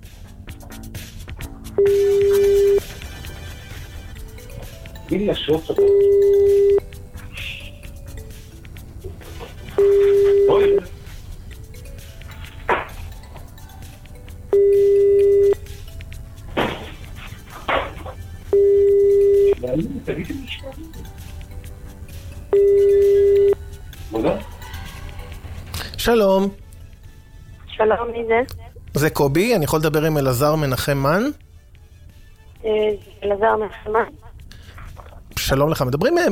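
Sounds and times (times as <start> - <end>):
ringback tones of an outgoing telephone call: 1.8 - 2.9, 5.7 - 7.0, 9.8 - 11.0, 14.5 - 15.9, 18.4 - 19.7, 22.5 - 23.8
speech: 5.2 - 6.6, 26.1 - 26.6, 27.8 - 31.4, 32.6 - 34.2, 35.5 - 36.3.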